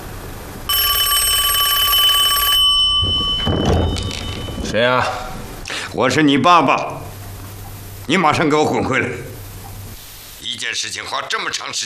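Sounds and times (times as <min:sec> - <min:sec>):
telephone bell ringing: 0:00.7 - 0:05.3
rustling and clattering: 0:03.0 - 0:04.8
speech: 0:04.7 - 0:05.2, 0:06.0 - 0:07.0, 0:08.1 - 0:09.3, 0:10.7 - 0:11.8.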